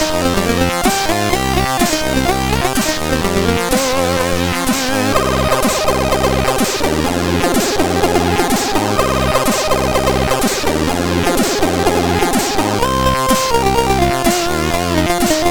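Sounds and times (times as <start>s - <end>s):
MOS6581 chip music: 0.0s - 15.5s.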